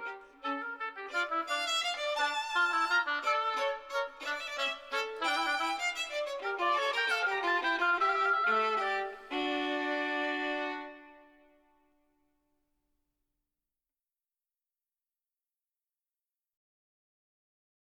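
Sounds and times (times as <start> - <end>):
oboe playing a fugue: 0.0 - 11.5
violin playing a fugue: 0.0 - 11.7.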